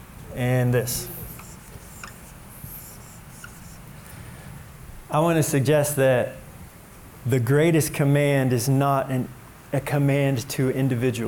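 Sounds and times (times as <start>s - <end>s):
low steady noise: 0.0s - 11.2s
speech: 0.4s - 1.2s, 5.1s - 6.4s, 7.2s - 11.2s
marker or chalk writing on a board: 0.8s - 3.9s.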